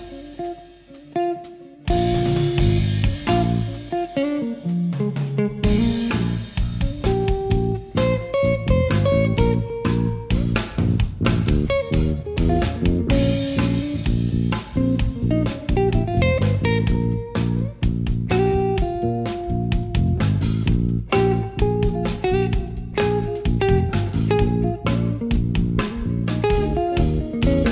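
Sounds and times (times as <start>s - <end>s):
solo rock guitar: 0.0s - 10.7s, 11.6s - 20.2s, 21.0s - 27.7s.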